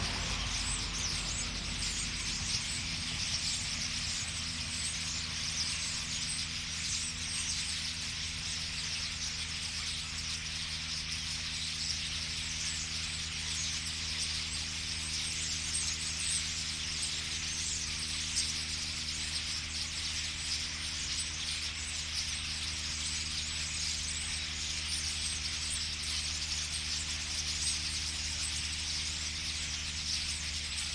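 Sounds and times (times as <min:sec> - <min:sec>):
traffic: 0:00.0 - 0:05.8
flock of common starlings chattering: 0:00.0 - 0:30.9
low mechanical hum: 0:00.0 - 0:30.9.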